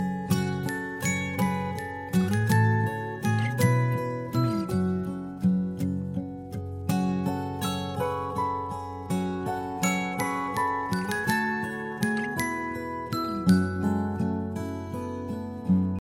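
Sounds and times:
background music: 0.0 - 15.9.

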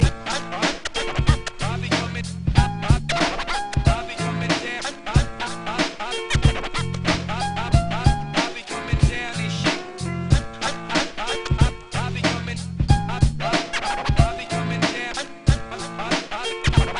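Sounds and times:
rap beats: 0.0 - 16.9.

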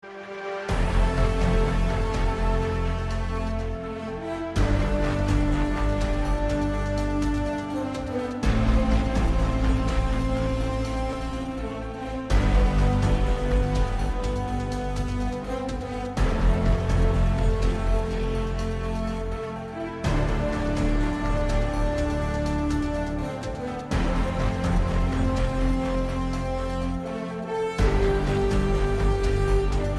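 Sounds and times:
lobby music: 0.0 - 29.9.

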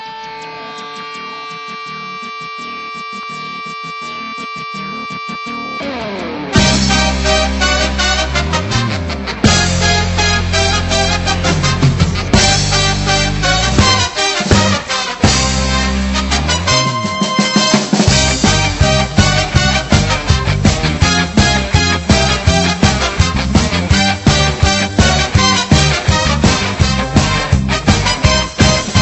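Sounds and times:
Japanese ska music: 0.0 - 29.0.

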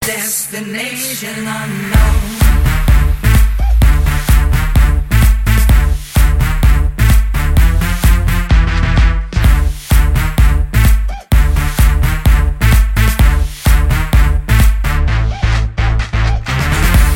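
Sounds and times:
bass music: 1.8 - 17.1.

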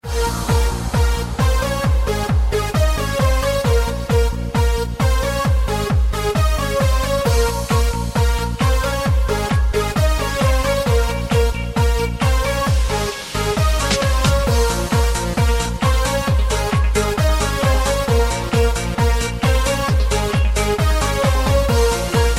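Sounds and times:
remix music: 0.0 - 22.3.

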